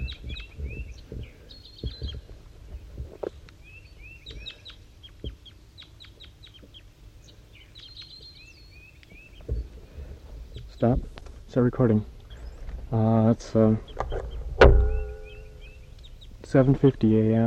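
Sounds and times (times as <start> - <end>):
soft thumps: 0.0 - 3.4, 9.4 - 11.4, 14.0 - 15.9
low rumbling noise: 0.0 - 5.8, 6.8 - 17.4
two birds calling to each other: 0.0 - 17.4
speech: 10.8 - 12.1, 12.9 - 14.0, 16.5 - 17.4.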